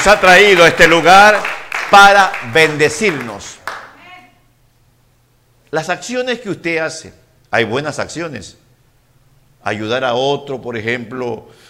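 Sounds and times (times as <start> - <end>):
speech: 0.0 - 3.6, 5.7 - 8.6, 9.6 - 11.6
audience applause: 0.0 - 3.9.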